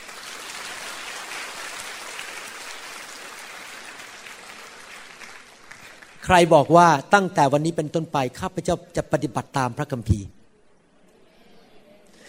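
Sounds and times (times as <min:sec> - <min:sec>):
audience clapping hands: 0:00.0 - 0:07.0
speech: 0:06.3 - 0:10.4.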